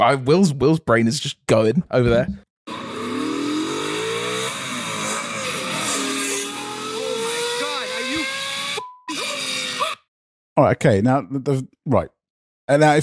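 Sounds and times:
speech: 0.0 - 2.5, 10.6 - 13.0
sports car engine revving: 2.7 - 8.8.

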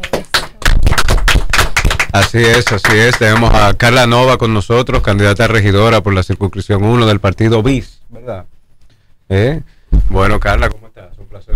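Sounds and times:
crowd applauding: 0.0 - 3.6
speech: 2.1 - 8.5, 9.3 - 11.5.

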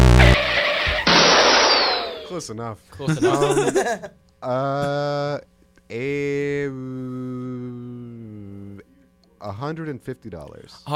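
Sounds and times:
laughter: 0.4 - 1.3, 3.1 - 4.2
car crash sound effect: 0.6 - 2.2
speech: 2.4 - 10.9.

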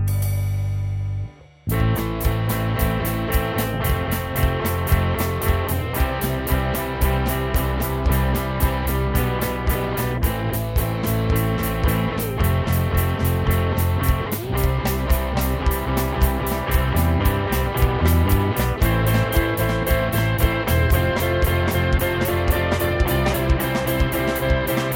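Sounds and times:
four-four garage band rock drum beat: 0.1 - 24.9.

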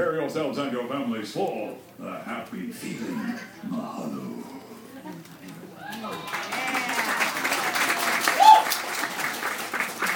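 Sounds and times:
speech: 0.0 - 6.7
audience clapping and cheering: 5.8 - 10.1.

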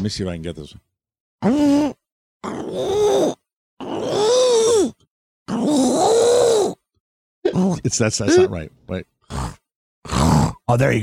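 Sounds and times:
speech: 0.0 - 3.3, 7.7 - 9.1, 10.7 - 11.0
person imitating a pug's middle-of-the-night grunts: 1.4 - 6.8, 7.5 - 8.5.

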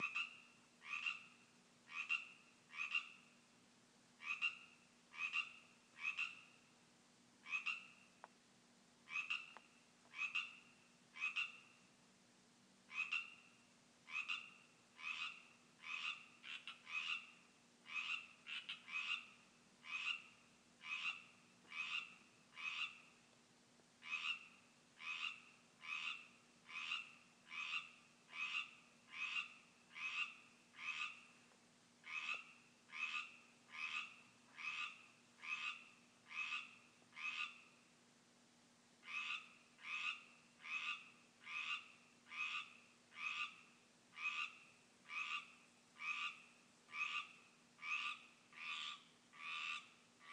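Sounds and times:
Pacific tree frog chorus in a yard: 0.0 - 3.4, 4.2 - 6.6, 7.4 - 8.1, 9.1 - 11.8, 12.9 - 23.2, 24.0 - 31.4, 32.0 - 37.8, 39.0 - 50.3.

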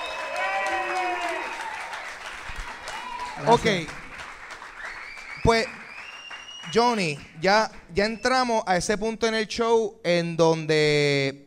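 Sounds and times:
audience applause: 0.0 - 7.6
speech: 3.4 - 4.0, 5.5 - 5.8, 6.6 - 11.4.

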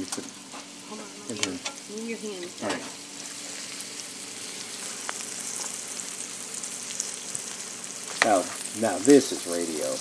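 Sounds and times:
speech: 0.0 - 0.4, 1.3 - 3.0, 8.2 - 9.9
onions and celery sautéing in a pan: 0.0 - 9.9.

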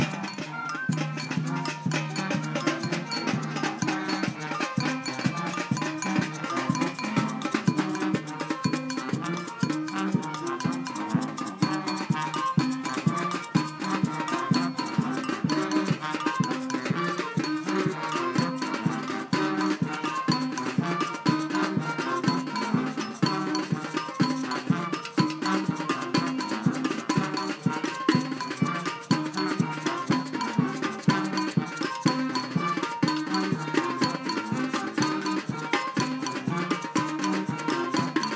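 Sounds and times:
Caribbean samba orchestra rehearsing: 0.0 - 38.3.

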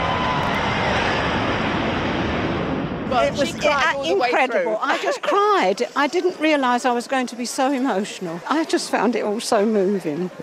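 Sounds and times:
Red Arrows aerobatic display jets flying over: 0.0 - 5.0
speech: 3.2 - 10.4
laughter: 4.4 - 5.8.

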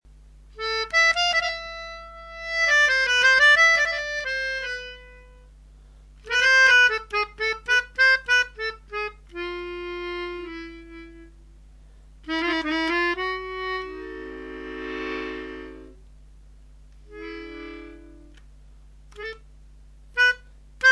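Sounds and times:
harmonica playing in a forest: 0.6 - 5.4, 6.2 - 11.4, 12.3 - 16.0, 17.1 - 18.4, 19.2 - 19.4, 20.2 - 20.8.

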